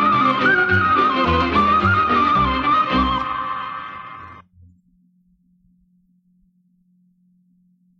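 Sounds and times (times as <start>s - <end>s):
Romanian folk dance music: 0.0s - 4.4s.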